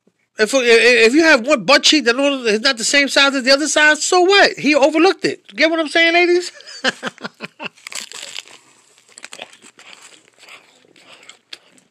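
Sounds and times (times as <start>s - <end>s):
speech: 0.4s - 8.0s
laughter: 6.4s - 7.8s
person eating a sandwich with crunchy chewing: 7.6s - 11.9s.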